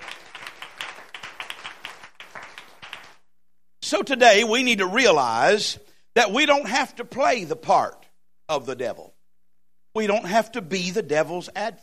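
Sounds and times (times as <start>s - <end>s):
audience clapping hands in praise: 0.0s - 3.3s
speech: 3.9s - 9.2s, 10.0s - 11.8s.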